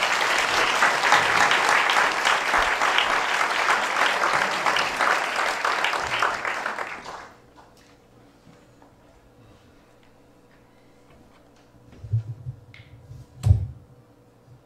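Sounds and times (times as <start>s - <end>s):
audience applause welcoming a speaker at a morning gathering: 0.0s - 7.5s.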